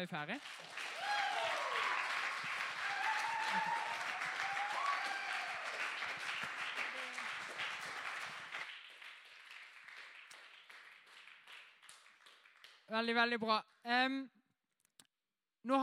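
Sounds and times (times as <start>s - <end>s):
speech: 0.0s - 0.8s, 3.5s - 3.8s, 12.9s - 14.4s, 15.6s - 15.8s
audience clapping loudly: 0.0s - 13.8s.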